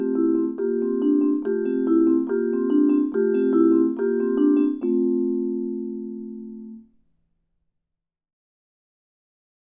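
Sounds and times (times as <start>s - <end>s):
vibraphone: 0.0s - 6.8s.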